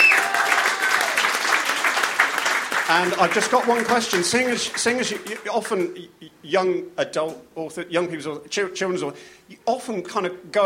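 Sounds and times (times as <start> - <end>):
audience applause for an author at a talk event: 0.0 - 5.5
speech: 2.9 - 10.6.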